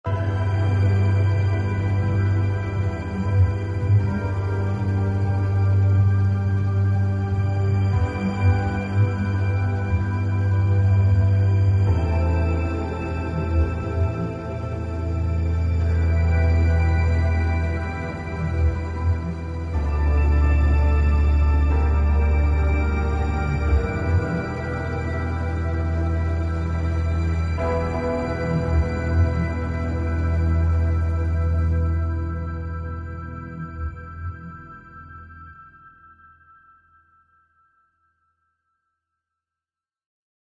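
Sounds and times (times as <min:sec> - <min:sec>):
suspense music loop: 0:00.0 - 0:35.5.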